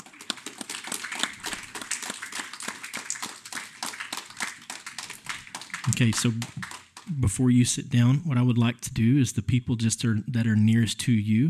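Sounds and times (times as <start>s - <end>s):
audience clapping: 0.0s - 7.4s
speech: 5.8s - 11.4s.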